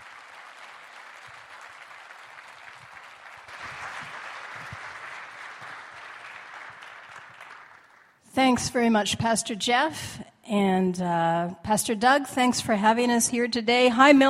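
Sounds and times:
church audience applause welcoming speakers to the stage: 0.0 - 8.2
speech: 8.4 - 14.2.

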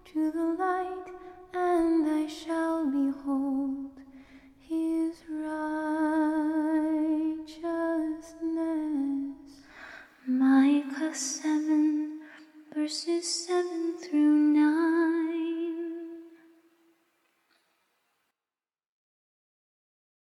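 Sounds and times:
a cappella scripture singing: 0.0 - 9.7, 10.3 - 16.4.

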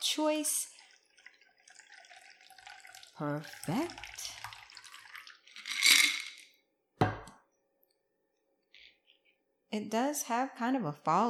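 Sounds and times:
speech: 0.2 - 0.8, 3.2 - 4.1, 9.7 - 11.2
cocktail strained into a cocktail glass: 5.5 - 6.4.

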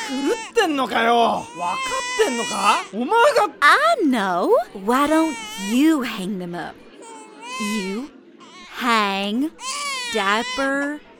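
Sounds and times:
baby screaming and crying: 0.0 - 3.0, 5.1 - 6.0, 7.0 - 8.9, 9.6 - 10.8
speech: 0.1 - 6.9, 7.6 - 8.2, 8.8 - 11.1.

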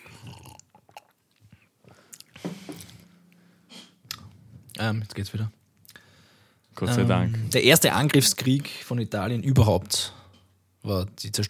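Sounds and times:
person drinking water: 0.0 - 3.1
speech: 4.8 - 5.6, 6.8 - 10.2, 10.9 - 11.4.

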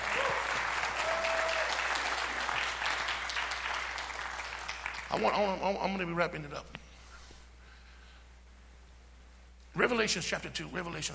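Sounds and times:
audience applause: 0.0 - 5.3
speech: 5.1 - 6.8, 9.8 - 11.1.

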